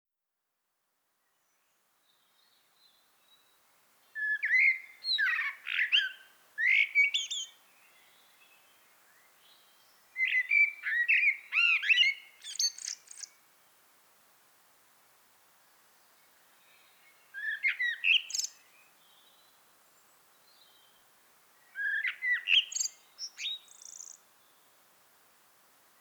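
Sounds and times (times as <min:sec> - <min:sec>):
common blackbird singing: 0:04.2 - 0:08.2, 0:10.2 - 0:13.3, 0:16.8 - 0:19.4, 0:21.7 - 0:24.2.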